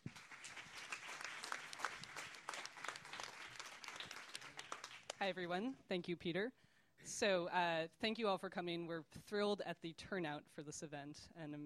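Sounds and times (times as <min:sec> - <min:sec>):
audience applause: 0:00.0 - 0:05.2
speech: 0:05.2 - 0:11.6.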